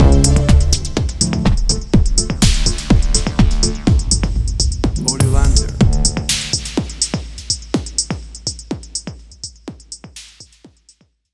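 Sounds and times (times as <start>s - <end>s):
big club anthem stinger: 0.0s - 4.4s, 5.0s - 7.3s.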